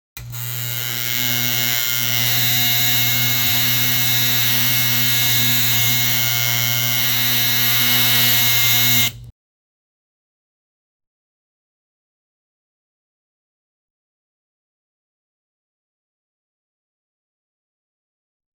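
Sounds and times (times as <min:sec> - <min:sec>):
shaver used for grooming: 0:00.2 - 0:09.3.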